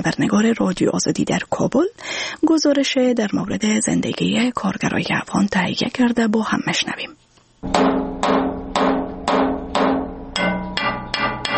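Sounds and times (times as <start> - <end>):
speech: 0.0 - 8.0
blacksmith's hammer striking metal: 7.6 - 11.5.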